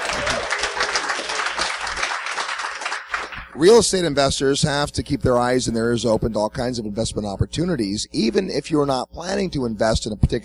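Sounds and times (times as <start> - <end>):
audience applause: 0.0 - 3.5
speech: 3.6 - 10.4.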